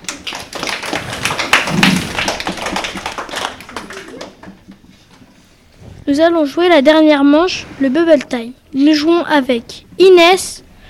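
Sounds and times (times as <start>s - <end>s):
room full of children clapping: 0.0s - 4.8s
speech: 6.1s - 10.6s.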